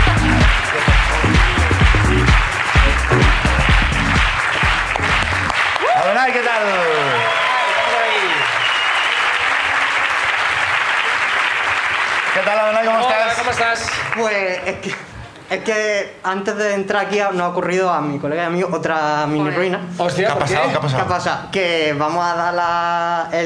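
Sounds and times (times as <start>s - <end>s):
audience applause: 0.0s - 15.1s
speech: 13.7s - 23.4s.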